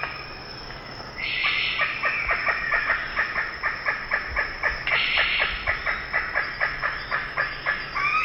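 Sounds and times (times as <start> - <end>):
Ivory-billed Aracari squealing calls in the eastern lowlands of South America: 1.2 - 4.0, 4.9 - 8.2.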